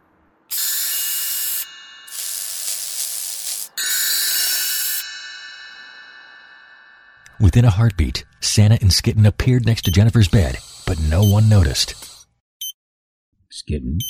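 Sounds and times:
spray hissing: 0.5s - 6.2s, 10.3s - 12.2s
speech: 7.4s - 12.1s, 13.5s - 14.0s.

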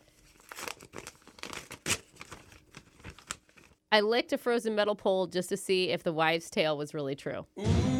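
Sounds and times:
paper envelope being torn open: 0.2s - 3.8s
speech: 3.9s - 7.8s.

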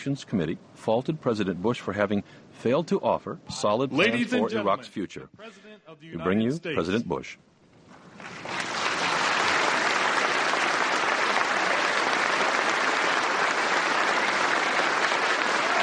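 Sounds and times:
speech: 0.0s - 7.5s
standing applause from a crowd: 8.0s - 15.8s.

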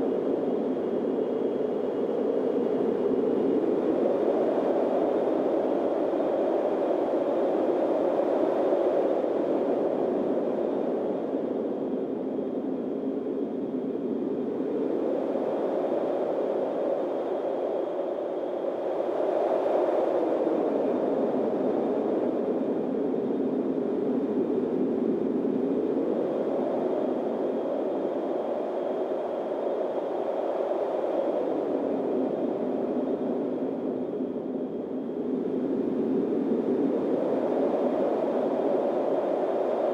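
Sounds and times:
faint high whine: 0.0s - 39.9s
windstorm roar: 0.0s - 39.9s.

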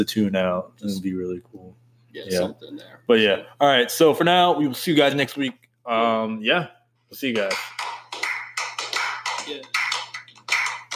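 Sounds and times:
speech: 0.0s - 7.9s, 9.5s - 9.8s
slow clap: 7.4s - 10.9s.

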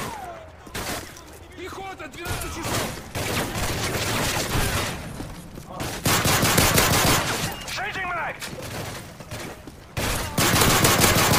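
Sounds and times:
rapid gunfire in a video game: 2.3s - 5.0s, 5.8s - 7.4s, 10.0s - 11.3s.

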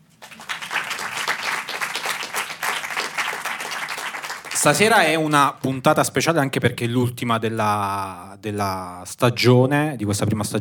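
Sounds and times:
audience applause: 0.0s - 5.5s
speech: 4.6s - 10.5s.

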